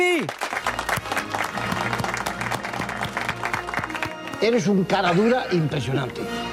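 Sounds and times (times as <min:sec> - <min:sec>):
applause: 0:00.0 - 0:04.8
speech: 0:00.2 - 0:00.5, 0:04.4 - 0:06.4.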